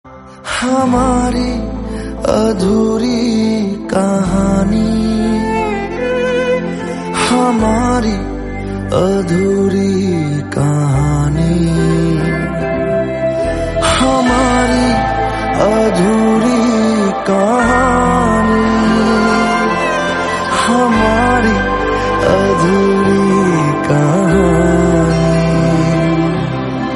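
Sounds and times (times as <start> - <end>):
background music: 0.1 - 26.9.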